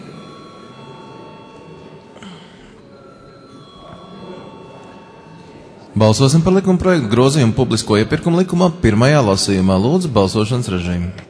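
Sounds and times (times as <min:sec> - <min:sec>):
chairman's bell ringing before vote: 0:00.0 - 0:08.5
speech: 0:06.0 - 0:11.2.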